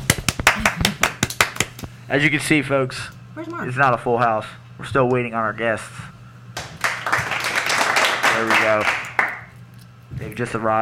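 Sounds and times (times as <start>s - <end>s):
small audience clapping: 0.0s - 1.9s, 6.6s - 9.6s
speech: 2.1s - 6.1s, 8.4s - 9.0s, 10.4s - 10.8s.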